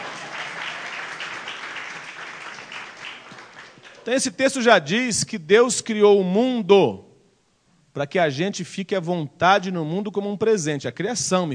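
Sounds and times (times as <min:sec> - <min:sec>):
audience applause: 0:00.0 - 0:04.1
speech: 0:04.0 - 0:07.1, 0:08.0 - 0:11.5.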